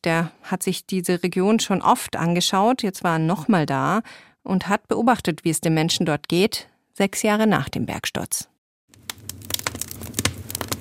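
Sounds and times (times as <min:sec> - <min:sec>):
speech: 0:00.0 - 0:08.5
wood fire crackling in a wood stove: 0:08.9 - 0:10.8.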